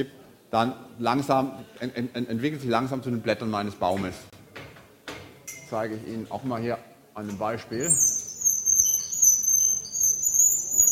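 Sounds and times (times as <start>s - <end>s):
speech: 0.0s - 4.4s, 5.7s - 8.1s
blackboard squeaking: 7.8s - 10.8s.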